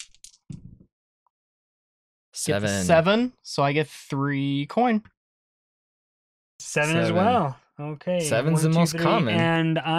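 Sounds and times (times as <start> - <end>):
dice being rolled: 0.0 - 0.5
speech: 2.4 - 5.1, 6.6 - 9.9.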